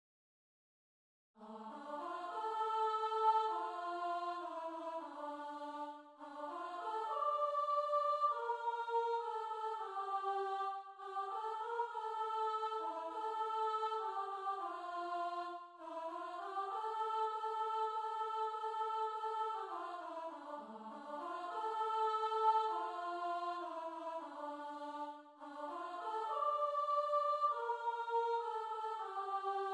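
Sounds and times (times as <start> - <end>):
soprano singing: 1.4 - 29.7.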